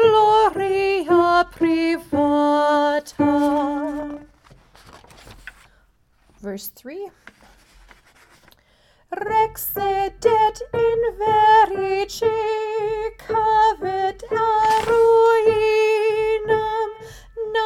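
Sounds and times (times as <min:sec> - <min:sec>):
soprano singing: 0:00.0 - 0:04.3, 0:09.1 - 0:17.6.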